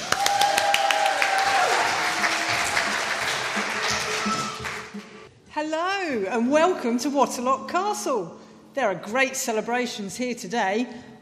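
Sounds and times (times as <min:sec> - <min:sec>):
audience clapping: 0:00.0 - 0:05.3
speech: 0:05.6 - 0:11.2.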